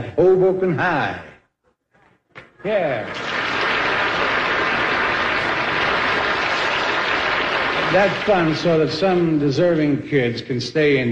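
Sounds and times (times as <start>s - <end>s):
speech: 0.1s - 1.3s, 2.6s - 3.3s, 7.9s - 11.0s
crowd applause: 2.8s - 9.2s.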